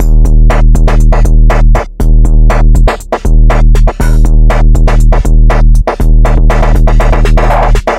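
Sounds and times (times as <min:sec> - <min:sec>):
hip hop beat: 0:00.0 - 0:07.9.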